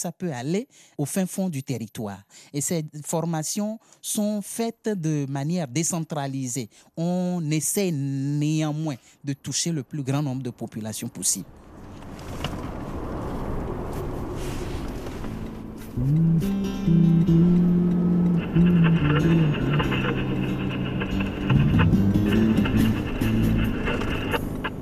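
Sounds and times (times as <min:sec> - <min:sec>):
speech: 0:00.0 - 0:11.6, 0:16.0 - 0:18.0
road rumble on the Nationale 1 highway in Togo: 0:09.9 - 0:24.8
vehicle engine droning on the Nationale 1 highway in Togo: 0:11.2 - 0:24.8.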